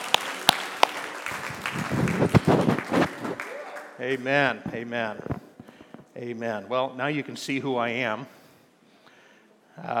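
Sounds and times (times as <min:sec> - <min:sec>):
church congregation applauding in praise during a service: 0:00.0 - 0:04.5
speech: 0:04.0 - 0:05.4, 0:06.2 - 0:08.4, 0:09.8 - 0:09.9.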